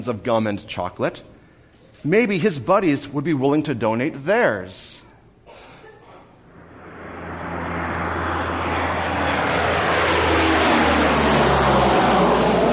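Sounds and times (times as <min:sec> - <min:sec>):
speech: 0:00.0 - 0:01.3, 0:02.0 - 0:05.0
C-54 transport plane roaring overhead: 0:06.5 - 0:12.7.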